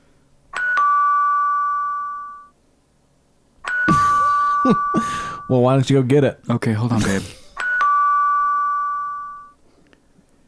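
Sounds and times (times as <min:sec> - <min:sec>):
doorbell two-note ding-dong chime: 0:00.5 - 0:02.5, 0:03.6 - 0:05.6, 0:07.6 - 0:09.6
speech: 0:04.6 - 0:07.4.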